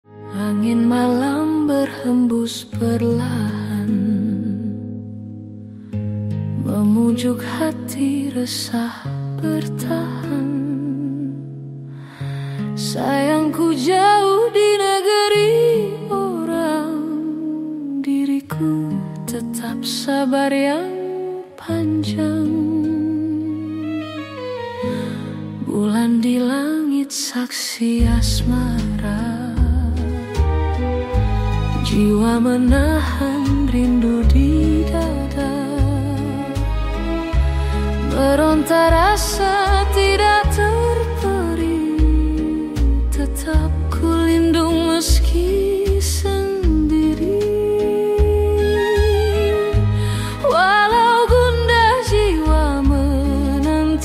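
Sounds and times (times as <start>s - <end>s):
retro soul ballad Nusantara folk fusion: 0.1s - 54.0s.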